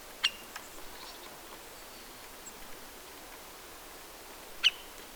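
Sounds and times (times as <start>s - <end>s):
Syrian woodpecker Dendrocopos syriacus sharp call notes: 0.2s - 1.2s, 4.6s - 5.0s.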